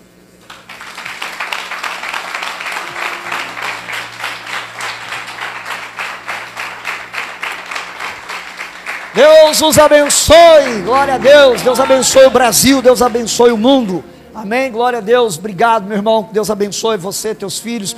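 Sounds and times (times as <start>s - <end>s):
audience applauding: 0.4s - 14.0s
speech: 9.2s - 17.9s.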